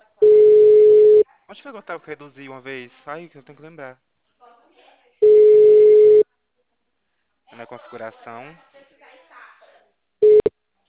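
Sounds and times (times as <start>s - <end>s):
telephone network tone for unreachable number: 0.2s - 1.2s, 5.2s - 6.2s, 10.2s - 10.5s
speech: 1.7s - 4.1s, 7.6s - 8.9s.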